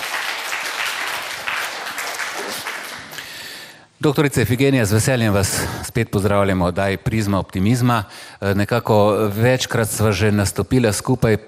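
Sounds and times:
stage show audience applause for a guest doctor: 0:00.0 - 0:03.4
speech: 0:04.0 - 0:11.4.

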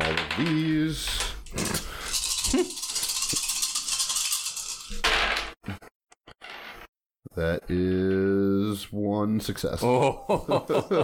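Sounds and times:
dice being rolled: 0:00.0 - 0:05.5
speech: 0:00.4 - 0:01.6, 0:07.4 - 0:08.1, 0:09.4 - 0:11.0
laughter: 0:09.8 - 0:11.0.

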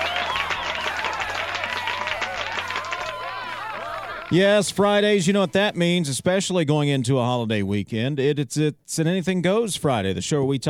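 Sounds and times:
scattered cheers and whistles: 0:00.0 - 0:04.3
crowd applause: 0:00.0 - 0:04.6
speech: 0:04.3 - 0:10.6.

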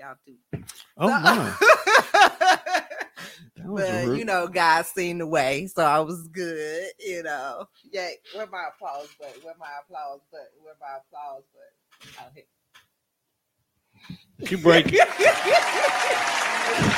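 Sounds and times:
speech: 0:00.0 - 0:02.6, 0:03.7 - 0:12.6, 0:14.0 - 0:16.9
laughter: 0:01.0 - 0:03.2, 0:03.8 - 0:04.2, 0:14.5 - 0:16.9
canned applause sound effect from soundboard: 0:14.5 - 0:16.9
whoops and cheers: 0:15.0 - 0:16.9.

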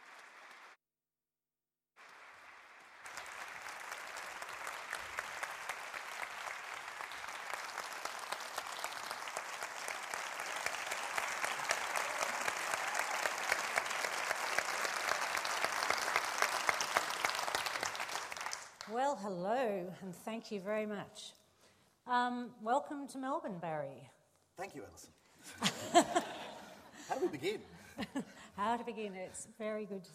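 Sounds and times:
audience applause welcoming two speakers at an in-conversation event: 0:00.0 - 0:00.8, 0:02.0 - 0:18.9
speech: 0:18.9 - 0:21.4, 0:22.1 - 0:26.4, 0:27.1 - 0:30.1
laughter: 0:25.4 - 0:28.9.

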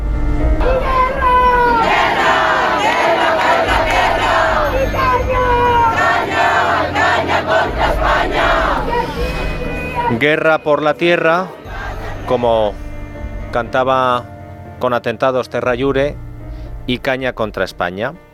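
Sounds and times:
crowd of protesters chanting slogans: 0:00.6 - 0:12.8
speech: 0:10.2 - 0:11.6, 0:12.3 - 0:12.8, 0:13.5 - 0:18.3.

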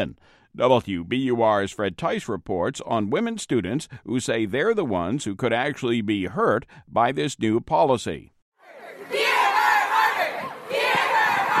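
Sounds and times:
speech: 0:00.0 - 0:08.3
protesters chanting a slogan: 0:08.6 - 0:11.5.

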